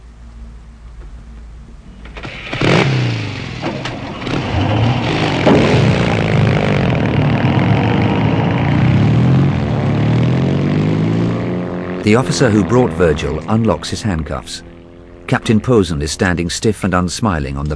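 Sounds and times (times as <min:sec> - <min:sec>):
car engine starting and driving off: 0:01.7 - 0:15.6
speech: 0:12.1 - 0:14.7, 0:15.3 - 0:17.7.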